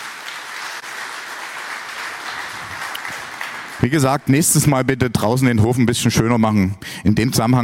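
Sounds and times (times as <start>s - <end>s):
audience applause: 0.0s - 4.6s
speech: 3.8s - 7.6s.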